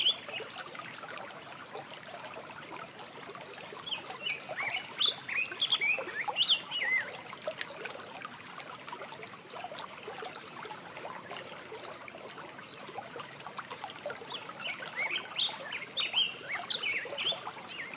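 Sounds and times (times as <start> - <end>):
stream running: 0.0 - 17.9.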